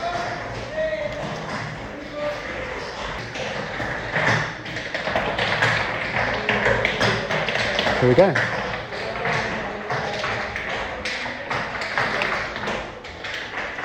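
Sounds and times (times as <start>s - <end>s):
flamenco dancers' heel-and-toe footwork in an advanced class in Madrid: 0.0s - 13.8s
speech: 8.0s - 8.6s.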